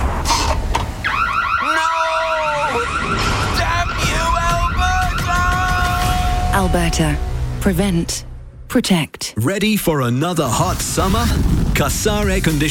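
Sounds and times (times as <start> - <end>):
home security system alarm: 1.0 - 6.4
speech: 6.6 - 12.6.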